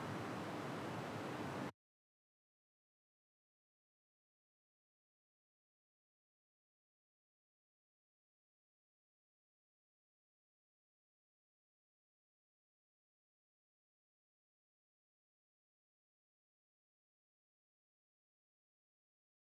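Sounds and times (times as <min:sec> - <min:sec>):
sidechained white noise: 0:00.0 - 0:01.7.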